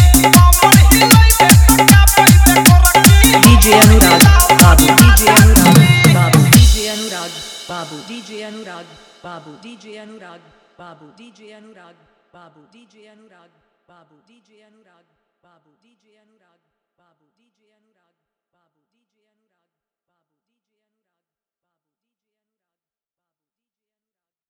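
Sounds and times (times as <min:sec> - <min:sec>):
full dholki drum with heavy bass: 0:00.0 - 0:09.2.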